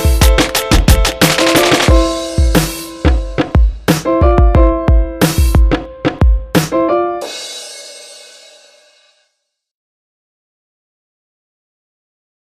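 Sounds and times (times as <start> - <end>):
boom bap beat: 0.0 - 6.8.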